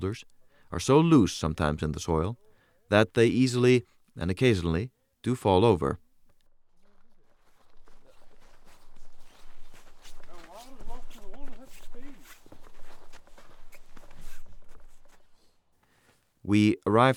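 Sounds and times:
speech: 0.0s - 6.0s, 16.5s - 17.1s
footsteps of a father and daughter walking in a small wooded enclave: 6.4s - 16.3s.

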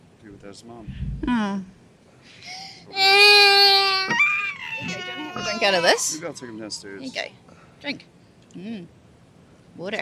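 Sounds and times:
speech: 0.2s - 3.7s, 5.5s - 9.0s, 9.8s - 9.9s
baby crying: 2.9s - 6.2s.

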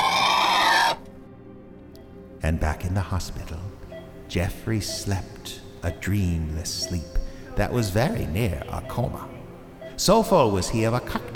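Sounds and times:
pigs squealing: 0.0s - 1.0s
speech: 2.4s - 9.3s, 10.0s - 11.3s.

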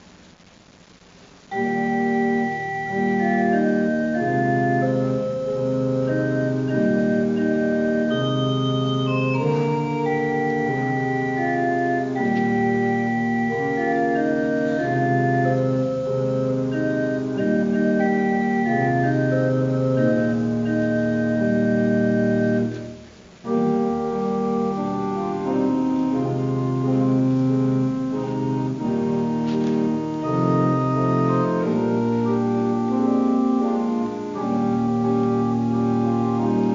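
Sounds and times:
organ playing: 1.5s - 36.7s.

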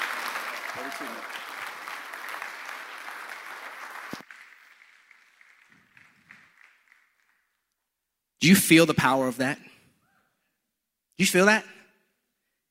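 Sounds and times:
wild applause: 0.0s - 7.4s
speech: 0.8s - 1.5s, 8.4s - 9.7s, 11.2s - 11.8s.

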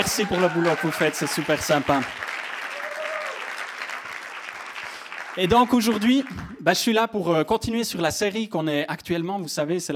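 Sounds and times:
speech: 0.0s - 2.4s, 5.4s - 9.9s
audience applause: 0.0s - 6.6s.

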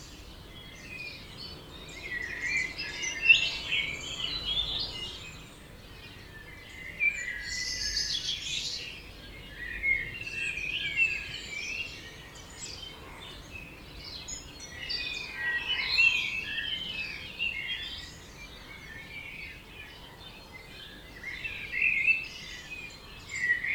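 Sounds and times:
birds chirping and trilling in Oberhofen Inntal Austria: 0.0s - 23.7s.

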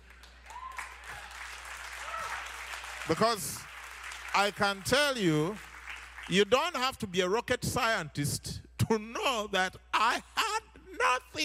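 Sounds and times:
crowd clapping: 0.0s - 6.9s
faint cheers and whistles: 0.4s - 2.5s
speech: 3.1s - 3.7s, 4.4s - 5.7s, 6.3s - 11.4s.

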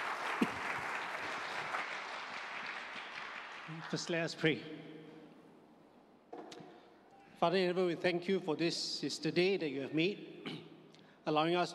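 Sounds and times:
church congregation at an Easter service applauding to welcome a reverend: 0.0s - 4.6s
speech: 3.7s - 4.9s, 7.4s - 10.6s, 11.2s - 11.7s.

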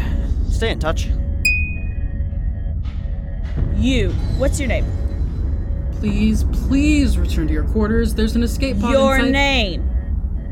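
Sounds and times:
deep steady engine rumble: 0.0s - 10.4s
speech: 0.6s - 1.2s, 3.8s - 5.0s, 6.0s - 9.9s
starship alarm high sonar-like electronic tone: 1.5s - 2.2s.

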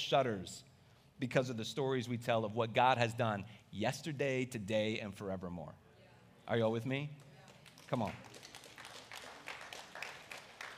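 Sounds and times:
speech: 0.1s - 5.8s, 6.5s - 7.3s, 7.9s - 8.4s
light polite golf-clap applause from a small number of people: 7.2s - 10.7s.

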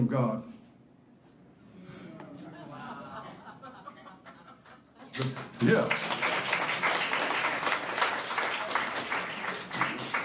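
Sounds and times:
speech: 0.1s - 0.5s, 5.2s - 6.1s
laughter: 2.2s - 5.3s
audience applause: 5.1s - 10.2s.

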